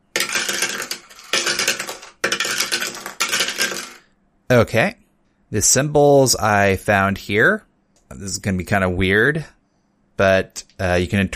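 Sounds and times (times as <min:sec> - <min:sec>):
dice rattling and clattering: 0:00.0 - 0:04.0
speech: 0:04.5 - 0:09.6, 0:10.2 - 0:11.3.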